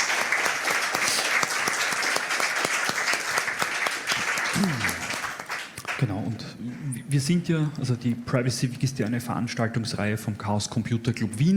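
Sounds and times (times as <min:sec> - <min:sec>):
sharp individual claps: 0:00.0 - 0:06.0
audience applause: 0:00.0 - 0:06.1
voice murmur: 0:04.5 - 0:05.2
speech: 0:07.1 - 0:11.5.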